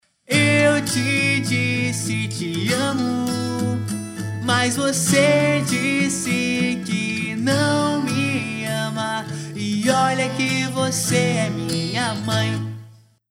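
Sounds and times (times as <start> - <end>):
emo music: 0.3 - 12.9.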